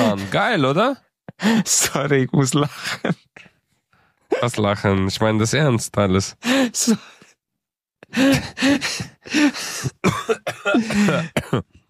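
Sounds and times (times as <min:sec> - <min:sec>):
speech: 0:00.2 - 0:03.5, 0:04.3 - 0:07.2, 0:08.1 - 0:11.8
person coughing fit: 0:09.8 - 0:11.8.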